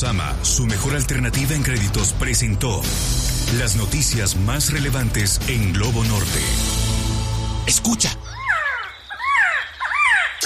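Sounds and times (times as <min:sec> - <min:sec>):
speech: 0:00.0 - 0:06.8, 0:07.7 - 0:08.3
quetzal song: 0:07.8 - 0:10.4.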